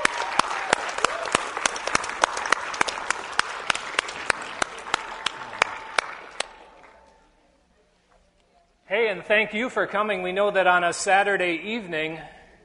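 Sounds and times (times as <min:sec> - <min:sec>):
audience applause: 0:00.0 - 0:07.1
speech: 0:09.1 - 0:12.4.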